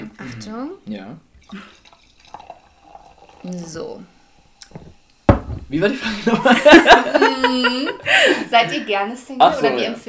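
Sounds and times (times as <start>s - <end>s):
speech: 0.5s - 1.8s, 3.4s - 4.8s, 5.7s - 10.0s
sparkling wine being poured into glass: 1.3s - 6.2s
laughter: 5.9s - 8.5s.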